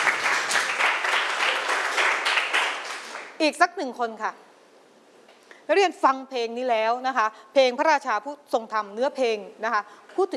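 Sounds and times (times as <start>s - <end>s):
group of students clapping for a classmate: 0.0s - 3.4s
speech: 3.4s - 4.5s, 5.7s - 10.3s.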